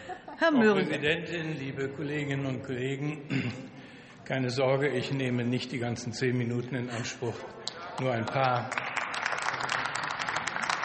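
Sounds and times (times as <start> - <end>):
speech: 0.4 - 8.9
applause in a parliamentary chamber: 7.6 - 10.8.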